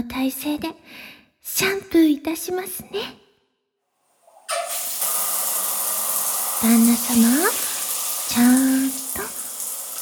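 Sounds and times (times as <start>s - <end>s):
speech: 0.0s - 3.2s, 6.6s - 7.6s, 8.3s - 9.4s
shower water spraying: 4.3s - 9.9s.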